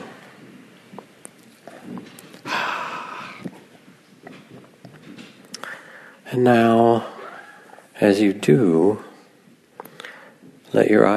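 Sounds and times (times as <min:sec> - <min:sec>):
deep breath during a guided meditation: 0:01.7 - 0:03.6, 0:05.6 - 0:06.3, 0:09.8 - 0:10.6
speech: 0:06.3 - 0:07.1, 0:08.0 - 0:09.1, 0:10.7 - 0:11.1.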